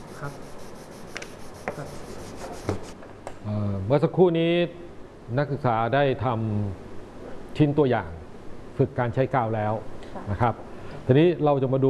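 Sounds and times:
sandpaper rubbing by hand along the grain of a wooden workpiece: 0:00.0 - 0:03.0
speech: 0:00.2 - 0:00.6, 0:01.8 - 0:02.2, 0:03.9 - 0:06.8, 0:07.6 - 0:08.2, 0:08.8 - 0:11.8.

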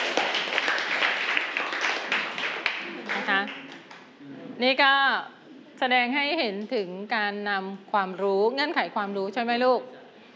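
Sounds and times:
class clapping: 0:00.0 - 0:04.1
speech: 0:04.6 - 0:10.0.

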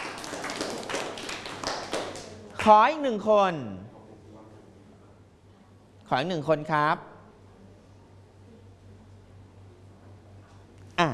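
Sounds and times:
faint scattered clapping from a classroom of students: 0:00.0 - 0:02.7
speech: 0:02.6 - 0:03.9, 0:06.1 - 0:07.1.

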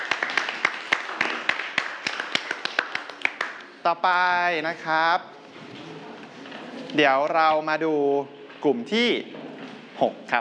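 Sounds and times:
classroom students clapping: 0:00.0 - 0:03.8
speech: 0:03.8 - 0:05.7, 0:07.0 - 0:09.4, 0:10.0 - 0:10.3.

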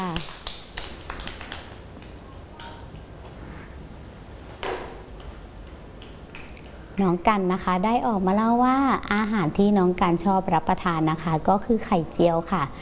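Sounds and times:
group of children clapping hands: 0:00.0 - 0:02.8
speech: 0:07.0 - 0:12.8.

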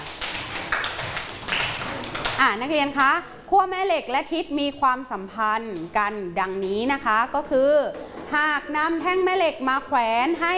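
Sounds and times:
students clapping: 0:00.0 - 0:02.4
speech: 0:02.4 - 0:10.5.

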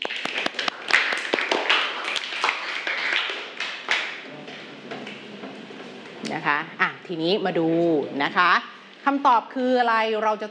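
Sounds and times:
group clapping their hands: 0:00.0 - 0:05.6
speech: 0:06.4 - 0:10.4.

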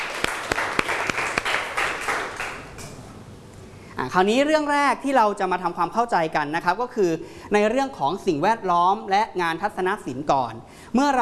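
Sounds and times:
applause from students: 0:00.0 - 0:02.8
speech: 0:04.0 - 0:11.2.

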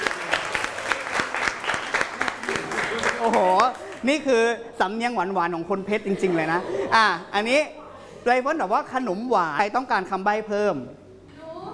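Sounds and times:
crowd applause: 0:00.0 - 0:04.0
speech: 0:03.2 - 0:11.0.

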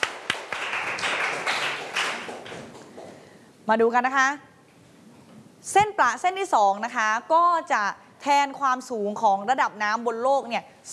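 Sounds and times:
students clapping: 0:00.0 - 0:03.2
speech: 0:03.7 - 0:04.5, 0:05.6 - 0:10.9.

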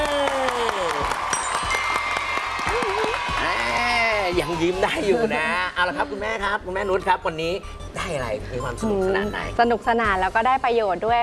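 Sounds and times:
audience applause for a team at a children's safe-media event: 0:00.0 - 0:03.7
speech: 0:04.3 - 0:11.2.

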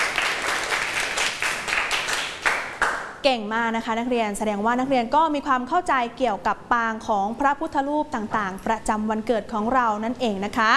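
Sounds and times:
students applauding: 0:00.0 - 0:03.1
speech: 0:03.2 - 0:10.7.

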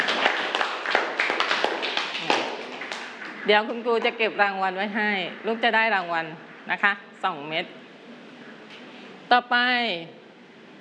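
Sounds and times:
group of students clapping: 0:00.0 - 0:04.1
speech: 0:03.5 - 0:07.8, 0:09.3 - 0:10.2.

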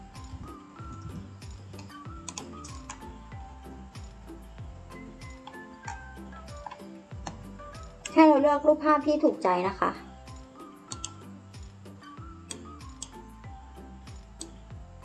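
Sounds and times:
faint computer keyboard typing to search: 0:01.5 - 0:03.1, 0:05.2 - 0:08.2, 0:10.9 - 0:11.2
speech: 0:08.2 - 0:10.1.

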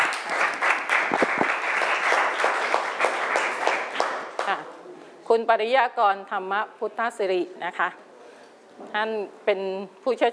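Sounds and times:
audience applause: 0:00.0 - 0:04.6
speech: 0:05.3 - 0:08.0, 0:08.8 - 0:10.3.

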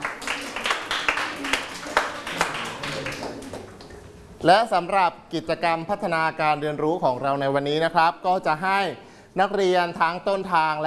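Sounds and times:
students clapping for themselves: 0:00.0 - 0:04.3
speech: 0:04.4 - 0:10.8.

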